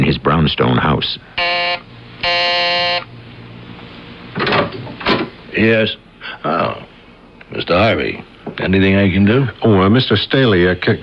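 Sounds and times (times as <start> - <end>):
speech: 0.2 - 2.5, 5.6 - 6.9, 7.5 - 11.0
electric doorbell buzzer: 1.4 - 3.1.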